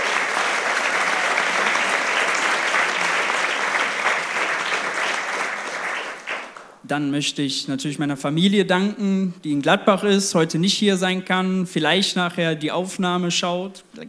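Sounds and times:
audience applause: 0:00.0 - 0:06.8
speech: 0:06.9 - 0:14.0.

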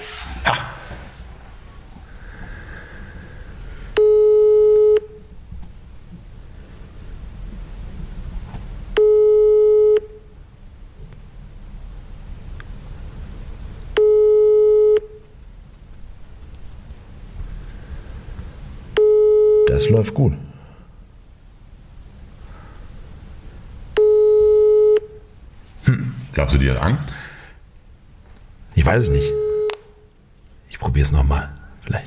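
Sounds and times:
low hiss: 0:00.0 - 0:32.0
telephone busy signal beeps: 0:04.0 - 0:05.2, 0:09.0 - 0:10.2, 0:14.0 - 0:15.2, 0:19.0 - 0:19.8, 0:24.0 - 0:25.2, 0:29.2 - 0:29.8
speech: 0:19.8 - 0:20.5, 0:26.5 - 0:27.2, 0:28.9 - 0:29.4, 0:31.0 - 0:32.0.

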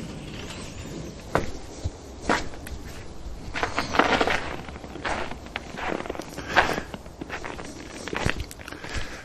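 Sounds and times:
footsteps crunching in snow: 0:01.3 - 0:09.2.

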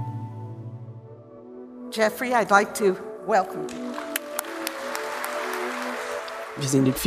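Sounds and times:
speech: 0:02.0 - 0:04.0, 0:06.6 - 0:07.0
applause at an award ceremony: 0:03.7 - 0:07.0.

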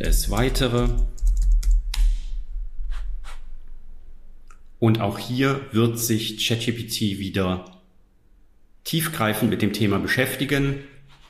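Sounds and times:
speech: 0:00.0 - 0:01.1, 0:04.8 - 0:07.8, 0:08.8 - 0:10.9
computer keyboard typing a question into ChatGPT: 0:00.0 - 0:02.2.

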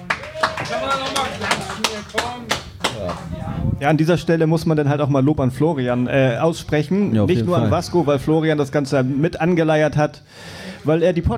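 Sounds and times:
applause: 0:00.0 - 0:03.4
speech: 0:00.6 - 0:11.3.

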